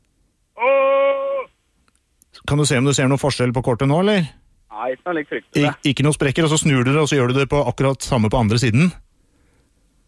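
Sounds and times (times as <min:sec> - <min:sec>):
person roaring: 0:00.6 - 0:01.5
speech: 0:02.4 - 0:09.0.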